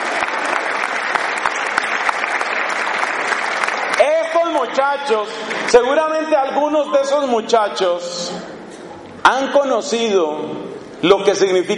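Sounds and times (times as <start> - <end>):
young people applauding each other: 0.0 - 6.2
speech: 4.7 - 8.3, 9.2 - 11.7.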